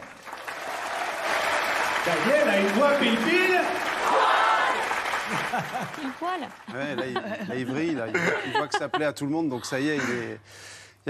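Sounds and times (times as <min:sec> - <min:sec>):
audience applauding loudly: 0:00.0 - 0:07.7
speech: 0:02.1 - 0:04.4, 0:05.3 - 0:11.0
laughter: 0:05.2 - 0:10.4.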